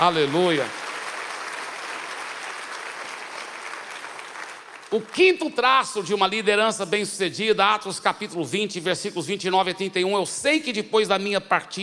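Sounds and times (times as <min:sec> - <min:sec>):
speech: 0:00.0 - 0:00.8, 0:04.9 - 0:11.8
audience applause: 0:00.0 - 0:05.5.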